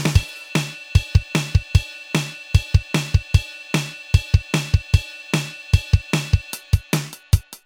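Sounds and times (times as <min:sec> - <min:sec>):
song: 0:00.1 - 0:07.5.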